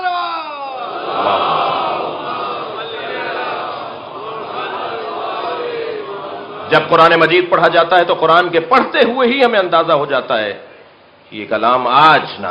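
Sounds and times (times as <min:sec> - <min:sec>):
crowd chanting a religious slogan during a sermon: 0:00.8 - 0:07.0
speech: 0:06.7 - 0:10.7, 0:11.3 - 0:12.4.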